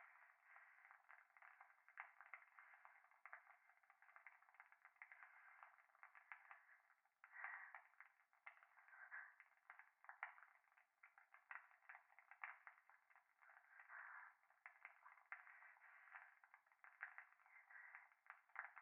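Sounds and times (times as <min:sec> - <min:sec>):
fireplace crackling: 0:00.0 - 0:18.8
breathing close to the right ear in a bath: 0:07.2 - 0:08.0, 0:08.8 - 0:09.4, 0:13.6 - 0:14.4, 0:17.5 - 0:18.1.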